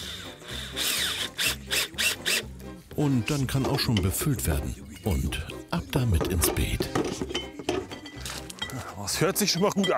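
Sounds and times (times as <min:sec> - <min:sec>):
cordless drill driving screws into a handle: 0:00.0 - 0:02.4
speech: 0:03.0 - 0:07.4, 0:09.1 - 0:09.9.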